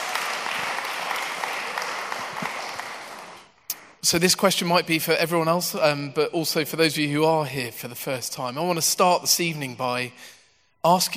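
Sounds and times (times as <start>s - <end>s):
audience giving round of applause: 0.0s - 3.9s
speech: 4.0s - 11.1s.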